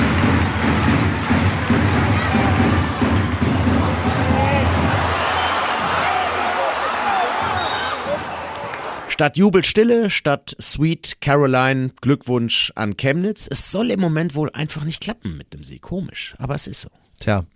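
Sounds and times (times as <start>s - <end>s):
arena crowd after missed final three-pointer: 0.0s - 9.2s
speech: 9.2s - 17.5s.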